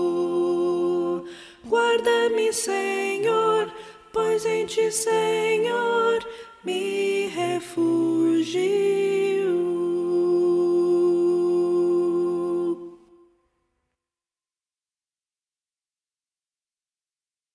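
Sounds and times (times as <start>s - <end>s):
soprano singing: 0.0s - 13.3s.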